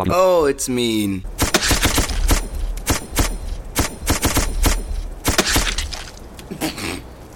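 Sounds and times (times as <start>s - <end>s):
speech: 0.1s - 1.3s
shotgun fire in a video game: 1.3s - 6.1s.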